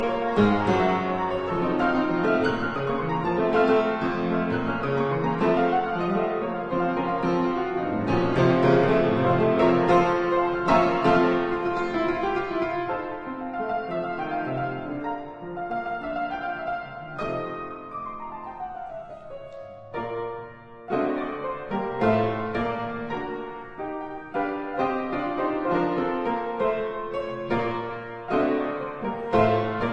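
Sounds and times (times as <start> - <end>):
keyboard sonata allegro in G minor: 0.0 - 29.9.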